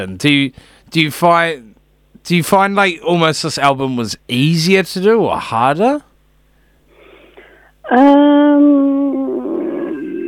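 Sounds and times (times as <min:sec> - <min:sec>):
speech: 0:00.0 - 0:06.1, 0:07.9 - 0:08.7
toddler yelling: 0:07.9 - 0:10.2.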